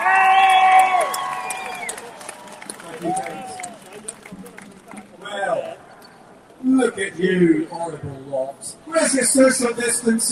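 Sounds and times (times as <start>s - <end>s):
loud high whoop: 0.0s - 3.8s
crowd cheering at a freedom rally in Trafalgar Square, London: 0.0s - 5.8s
speech: 7.1s - 10.2s.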